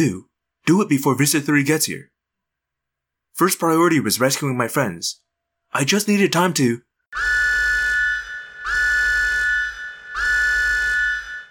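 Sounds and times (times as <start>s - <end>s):
speech: 0.0s - 2.1s, 3.4s - 7.4s
alarm going off: 7.2s - 11.5s.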